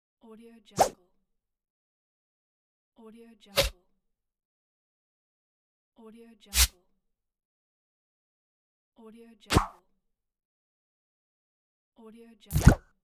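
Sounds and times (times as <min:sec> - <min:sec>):
swipe sound: 0:00.8 - 0:01.0, 0:09.5 - 0:09.7, 0:12.5 - 0:12.8.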